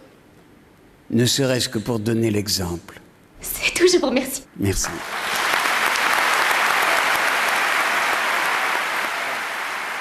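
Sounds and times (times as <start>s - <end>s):
speech: 1.1s - 5.2s
audience applause, standing ovation for the Palme d'Or: 4.8s - 10.0s.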